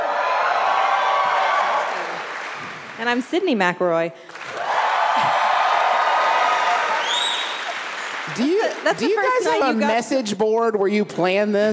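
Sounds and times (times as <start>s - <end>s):
live audience applause: 0.0s - 3.2s, 4.2s - 9.9s
speech: 3.0s - 4.4s, 5.2s - 5.5s, 8.4s - 11.7s.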